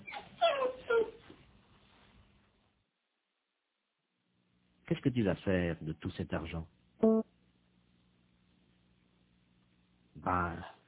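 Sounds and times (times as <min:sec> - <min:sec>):
dog whimpering: 0:00.0 - 0:01.3
speech: 0:05.0 - 0:06.8.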